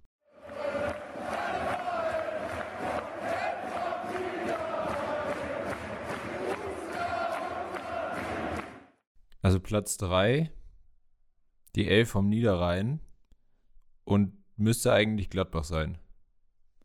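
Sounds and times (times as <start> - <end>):
crowd singing a football club fan song: 0.3 - 8.9
speech: 9.5 - 10.6, 11.8 - 13.1, 14.1 - 16.0.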